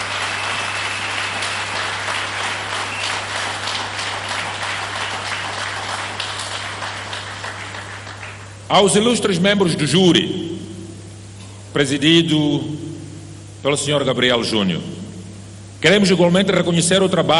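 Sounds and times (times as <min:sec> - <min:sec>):
crowd applauding: 0:00.0 - 0:08.6
low constant hum: 0:00.0 - 0:17.3
speech: 0:08.7 - 0:10.5, 0:11.8 - 0:12.9, 0:13.6 - 0:15.0, 0:15.8 - 0:17.3.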